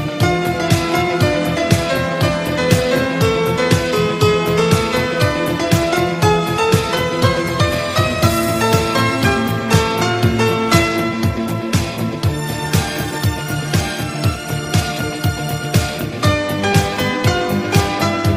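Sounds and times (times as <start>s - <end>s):
melody: 0.2s - 18.3s.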